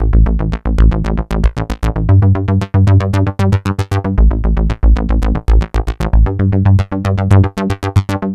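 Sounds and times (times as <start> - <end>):
bass: 0.0 - 8.3.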